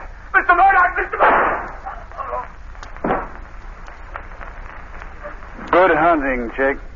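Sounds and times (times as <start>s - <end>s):
speech: 0.5s - 1.7s, 5.8s - 6.9s
gunshot in a radio drama: 1.2s - 1.8s, 3.0s - 3.4s.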